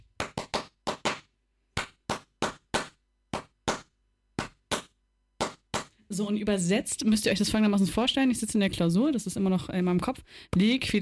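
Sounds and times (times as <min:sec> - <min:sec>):
hand claps: 0:00.0 - 0:06.0
speech: 0:06.1 - 0:11.0.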